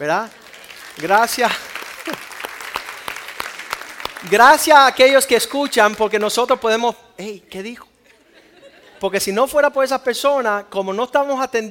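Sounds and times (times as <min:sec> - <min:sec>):
speech: 0:00.0 - 0:00.4, 0:01.0 - 0:02.2, 0:04.2 - 0:07.9, 0:09.0 - 0:11.6
audience applause: 0:00.3 - 0:05.0.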